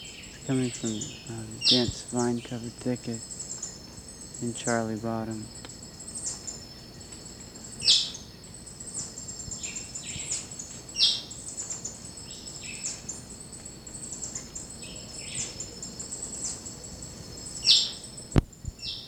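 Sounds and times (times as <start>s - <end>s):
high insect drone: 0.0s - 19.0s
quiet bird notes: 0.0s - 19.0s
white-chinned thrush harsh chirps: 0.2s - 6.5s
speech: 0.5s - 3.4s, 4.4s - 5.6s.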